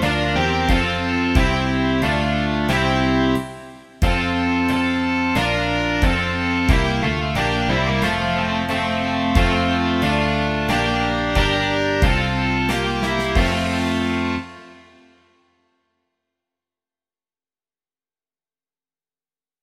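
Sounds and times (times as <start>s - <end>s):
rock music: 0.0s - 15.0s.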